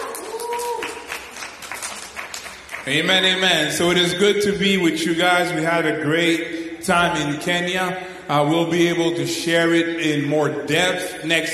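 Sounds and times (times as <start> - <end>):
audience applause: 0.0 - 3.5
speech: 2.8 - 11.5.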